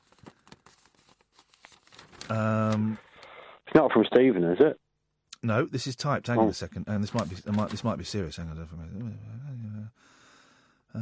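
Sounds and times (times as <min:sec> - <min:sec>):
envelope with a letter inside being ripped open: 0:00.0 - 0:02.8
speech: 0:02.3 - 0:03.0, 0:03.8 - 0:04.8, 0:05.4 - 0:09.4.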